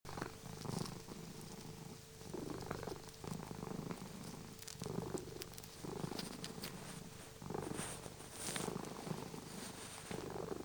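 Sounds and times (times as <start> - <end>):
domestic cat purring: 0.1 - 10.6.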